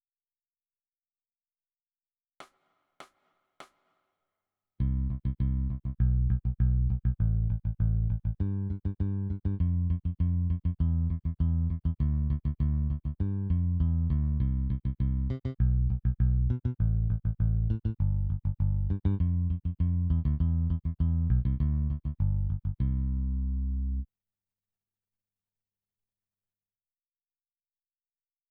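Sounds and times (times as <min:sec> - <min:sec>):
bass: 0:04.8 - 0:24.1.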